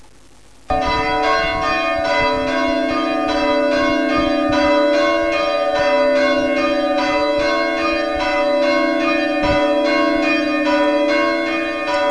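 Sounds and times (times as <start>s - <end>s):
bells ringing: 0.7s - 12.0s.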